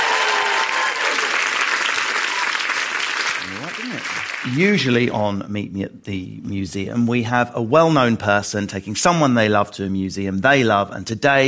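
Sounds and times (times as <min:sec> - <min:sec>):
audience applause: 0:00.0 - 0:05.0
speech: 0:04.4 - 0:11.4.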